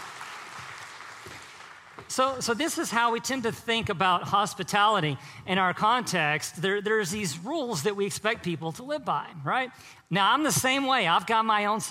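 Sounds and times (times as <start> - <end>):
crowd clapping: 0.0 - 2.1
speech: 2.1 - 11.8.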